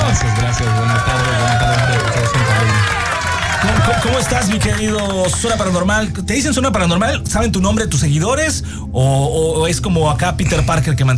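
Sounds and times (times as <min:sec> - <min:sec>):
studio audience applause and cheering: 0:00.0 - 0:06.0
loud music: 0:00.0 - 0:08.4
speech: 0:04.0 - 0:11.1.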